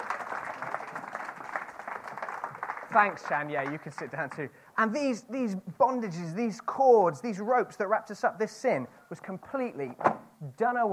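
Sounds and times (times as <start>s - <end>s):
audience applause: 0.0s - 4.4s
speech: 2.9s - 10.9s.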